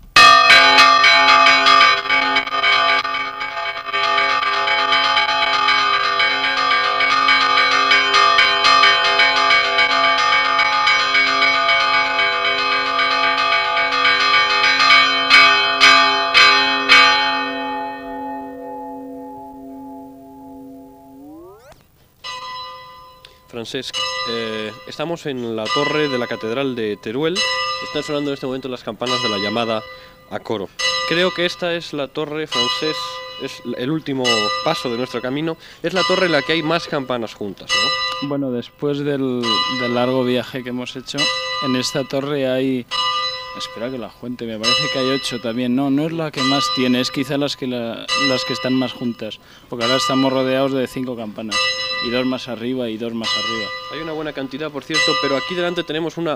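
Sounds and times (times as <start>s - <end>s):
bell: 0.2s - 31.6s, 32.5s - 38.4s, 39.4s - 56.3s.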